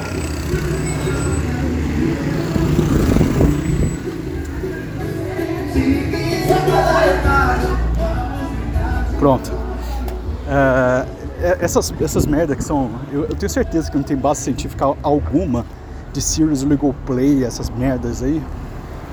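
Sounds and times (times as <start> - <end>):
motorcycle passing by: 0.0 - 10.4
speech: 9.2 - 9.6, 11.5 - 18.6.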